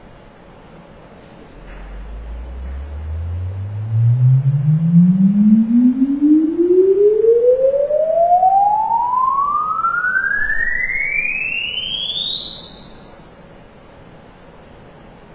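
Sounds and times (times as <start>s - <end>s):
test sine sweep for measuring an impulse response: 1.4s - 13.4s.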